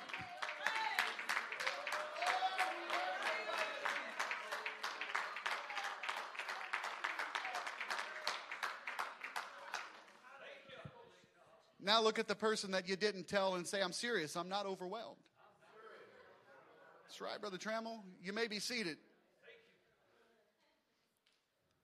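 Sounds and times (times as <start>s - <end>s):
audience clapping hands in a steady rhythmic beat: 0.0s - 10.2s
speech: 11.9s - 15.3s, 17.2s - 19.1s.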